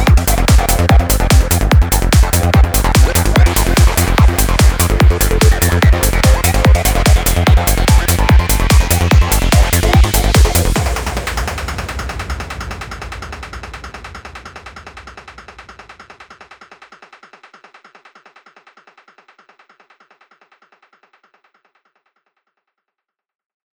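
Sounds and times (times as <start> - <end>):
psychedelic music: 0.0 - 13.3.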